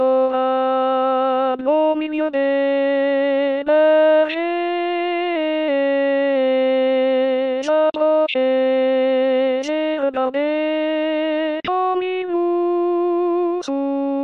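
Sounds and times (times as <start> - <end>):
hymn sung by altos: 0.0 - 14.2.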